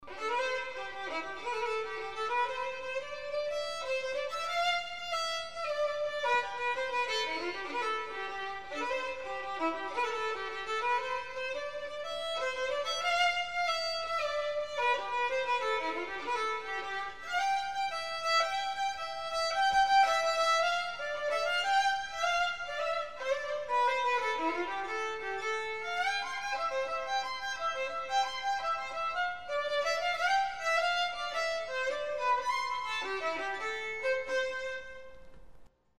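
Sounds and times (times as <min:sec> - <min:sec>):
solo violin playing Celtic wedding music: 0:00.0 - 0:35.7.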